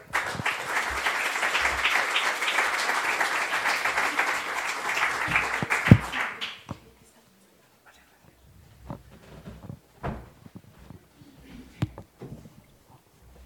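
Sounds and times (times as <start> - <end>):
loud audience applause: 0.0 - 6.8.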